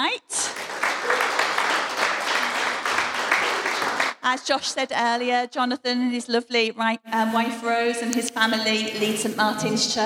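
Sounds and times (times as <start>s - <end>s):
church congregation applause welcoming a guest speaker at an evening service: 0.5s - 4.2s
speech: 4.2s - 10.0s.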